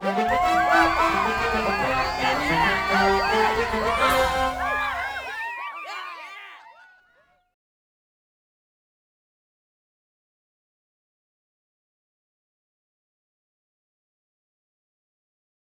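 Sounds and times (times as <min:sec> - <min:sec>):
race win music: 0:00.0 - 0:05.3
laughter: 0:00.0 - 0:07.1.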